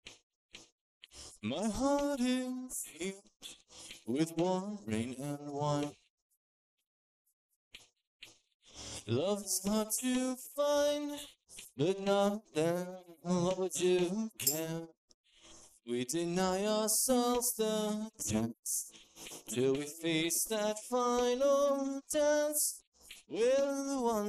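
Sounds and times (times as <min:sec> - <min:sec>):
person singing: 0:01.4 - 0:03.2, 0:04.1 - 0:06.0, 0:09.1 - 0:14.9, 0:15.9 - 0:18.9, 0:19.5 - 0:24.2.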